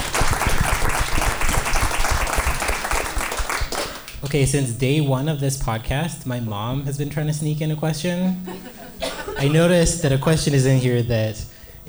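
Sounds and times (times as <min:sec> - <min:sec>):
crowd applause: 0:00.0 - 0:04.2
speech: 0:04.3 - 0:08.8, 0:09.4 - 0:11.8
laughter: 0:08.3 - 0:10.0.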